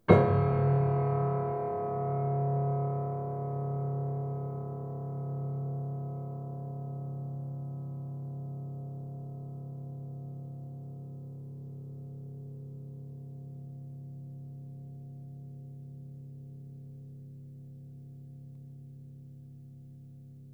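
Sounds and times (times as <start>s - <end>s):
low piano harmonics with pedal: 0.0s - 9.3s.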